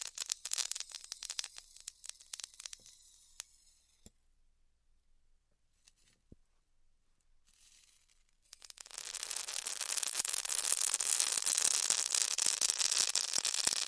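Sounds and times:
styrofoam being cut with a heated tool: 0:00.0 - 0:02.8, 0:07.6 - 0:13.8.

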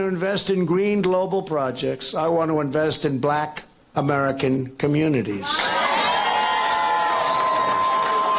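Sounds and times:
speech: 0:00.0 - 0:05.8
rally crowd cheering: 0:05.4 - 0:08.3.

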